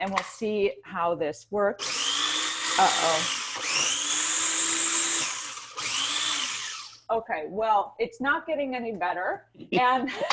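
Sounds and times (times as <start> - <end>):
speech: 0.0 - 2.0, 2.8 - 3.9, 7.1 - 10.3
blender blending chunky mixture: 1.8 - 7.1.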